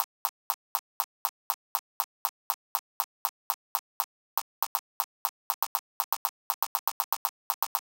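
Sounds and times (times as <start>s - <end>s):
click: 0.0s - 7.9s.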